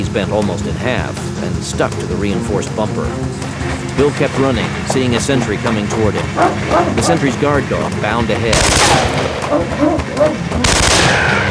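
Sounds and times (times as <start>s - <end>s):
speech: 0.0s - 11.4s
AK-47 gunfire bursts: 8.5s - 9.4s, 10.6s - 11.4s.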